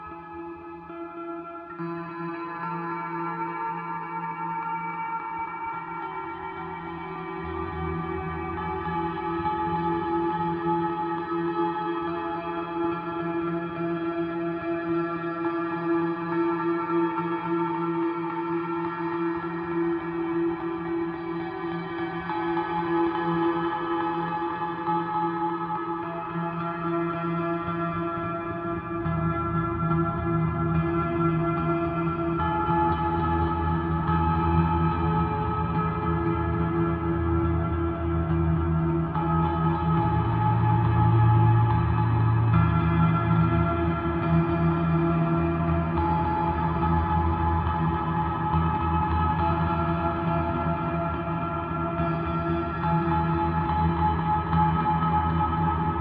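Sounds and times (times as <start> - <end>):
guitar: 0.0 - 55.9.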